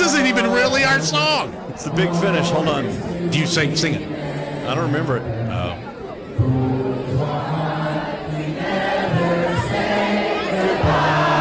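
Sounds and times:
crowd yelling at song's finish: 0.0s - 1.8s, 7.4s - 11.3s
speech: 0.1s - 6.6s.

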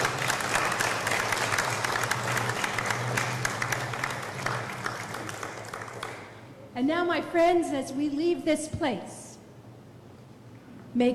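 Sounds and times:
audience applause: 0.0s - 6.5s
speech: 6.8s - 9.2s, 11.0s - 11.1s.

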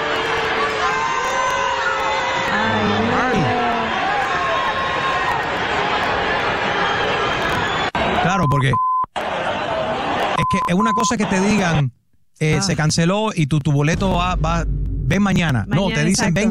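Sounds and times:
crowd booing: 0.0s - 8.4s, 9.2s - 10.4s
speech: 8.4s - 8.9s, 10.5s - 16.4s.

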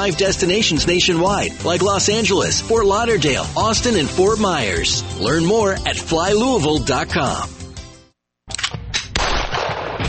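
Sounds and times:
speech: 0.0s - 7.6s
gunfire at a shooting range in Louisville: 9.0s - 10.0s.

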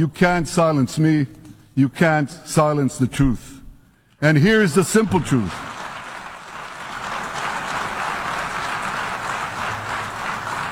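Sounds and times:
speech: 0.0s - 3.6s, 4.2s - 5.8s
audience applause: 5.2s - 10.6s.

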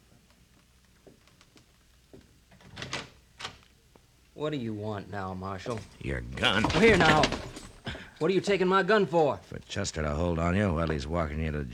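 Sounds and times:
door to a room opening: 2.6s - 3.6s, 5.7s - 7.8s
speech: 4.4s - 7.6s, 8.2s - 11.7s.

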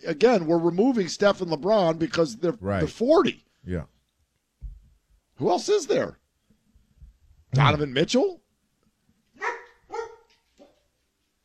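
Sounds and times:
speech: 0.0s - 3.9s, 5.4s - 6.2s, 7.5s - 8.4s
female dog barking: 9.4s - 10.8s.

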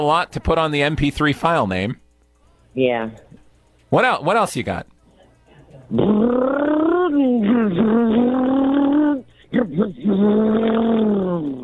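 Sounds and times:
speech: 0.0s - 2.0s, 2.8s - 3.3s, 3.9s - 4.9s, 5.8s - 6.7s, 9.5s - 11.6s
voice imitating a car engine: 5.9s - 11.6s.

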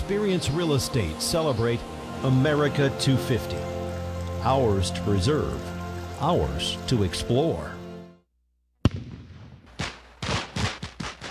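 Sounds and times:
speech: 0.1s - 3.8s, 4.4s - 7.8s
fireworks exploding: 8.8s - 11.2s.

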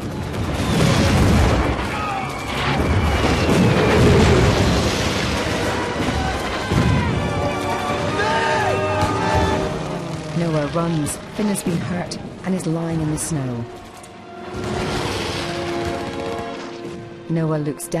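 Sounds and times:
bombs dropped from planes exploding: 0.0s - 10.7s, 14.4s - 17.1s
speech: 10.8s - 13.8s, 17.3s - 17.9s.

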